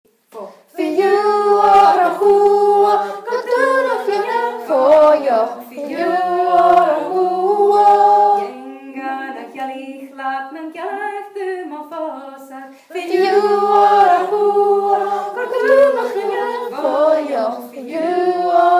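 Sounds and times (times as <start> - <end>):
Gaelic women singing a working song: 0.3 - 18.7.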